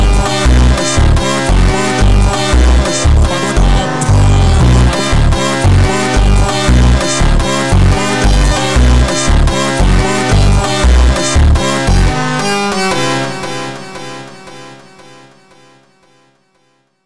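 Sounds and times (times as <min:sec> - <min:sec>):
slowed funk music: 0:00.0 - 0:13.3.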